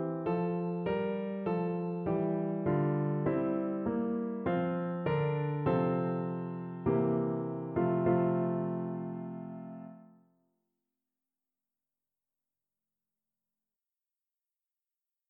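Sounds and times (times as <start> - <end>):
piano playing a carol: 0.0 - 10.2.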